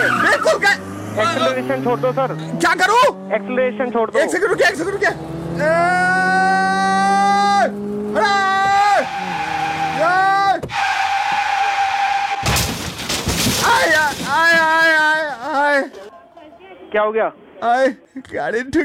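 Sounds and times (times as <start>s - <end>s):
tires squealing: 0.0s - 15.4s
speech: 1.2s - 6.8s, 16.9s - 18.8s
car crash impact: 10.6s - 15.0s.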